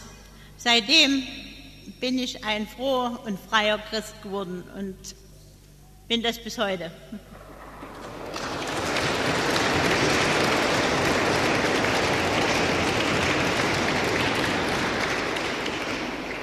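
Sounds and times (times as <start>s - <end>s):
speech: 0.6s - 1.4s, 2.0s - 5.2s, 6.1s - 7.4s
audience clapping: 7.3s - 16.4s.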